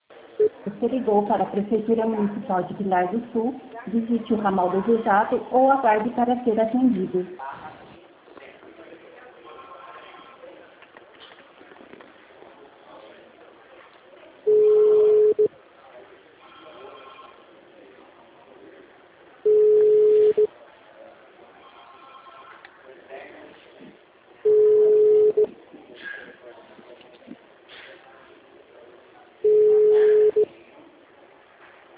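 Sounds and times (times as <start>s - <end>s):
speech: 0.4s - 7.6s
unanswered telephone call ringback tones: 14.5s - 15.5s, 19.5s - 20.5s, 21.8s - 22.6s, 24.5s - 25.5s, 29.4s - 30.4s.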